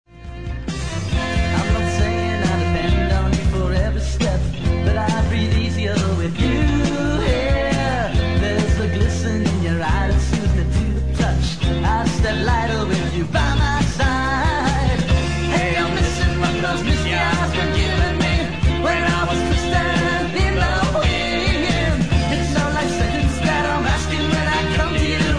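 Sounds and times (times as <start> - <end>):
lead vocal: 1.0 - 25.3.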